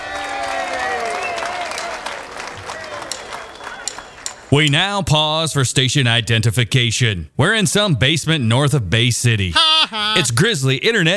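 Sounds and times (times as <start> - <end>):
audience applause welcoming a performer at an evening show: 0.0 - 4.3
speech: 4.5 - 11.1
laughter: 9.5 - 10.4.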